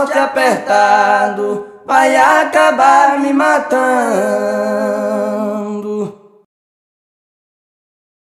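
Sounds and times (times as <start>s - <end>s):
toada folk song: 0.0s - 6.3s.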